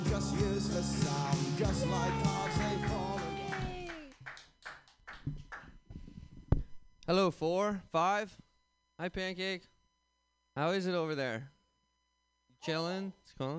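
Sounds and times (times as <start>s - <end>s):
speech: 0.2s - 3.1s, 7.1s - 8.4s, 9.0s - 9.7s, 10.6s - 11.6s, 12.6s - 13.5s
audience clapping: 1.7s - 5.7s.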